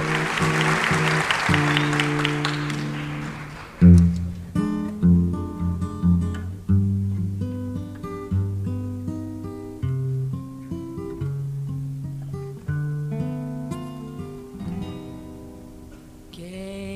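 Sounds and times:
theatre audience applauding: 0.0s - 4.5s
instrumental music with sustained chords and plucked notes: 0.0s - 16.3s.

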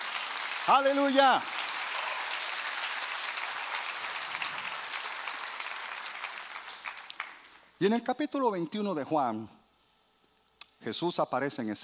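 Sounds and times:
audience applause: 0.0s - 7.7s
speech: 0.7s - 1.6s, 7.8s - 9.6s, 10.8s - 11.8s.

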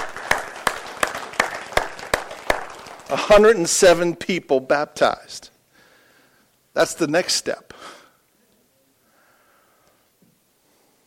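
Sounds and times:
audience applause: 0.0s - 3.6s
speech: 3.1s - 5.5s, 6.8s - 8.0s.

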